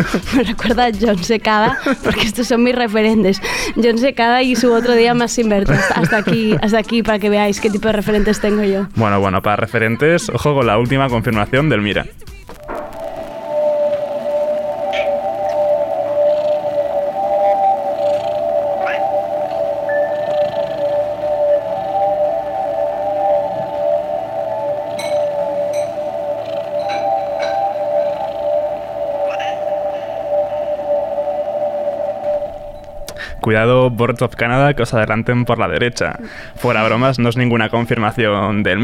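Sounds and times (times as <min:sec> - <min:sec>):
laughter: 0:00.0 - 0:02.6, 0:04.4 - 0:08.9
speech: 0:00.0 - 0:12.4, 0:33.5 - 0:38.8
scattered soft blips and clicks: 0:12.3 - 0:33.3
brief sliding tone: 0:12.4 - 0:33.5
ambient synth chord made by a cat stepping on synthesizers: 0:12.6 - 0:33.2.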